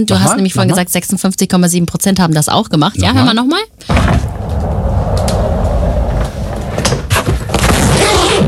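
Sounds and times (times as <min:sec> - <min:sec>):
speech: 0:00.0 - 0:04.4
rolling suitcase rolled along: 0:03.9 - 0:08.4.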